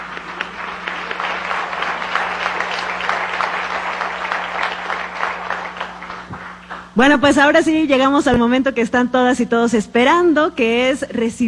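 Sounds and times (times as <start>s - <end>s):
applause: 0.0s - 6.3s
speech: 7.0s - 11.4s.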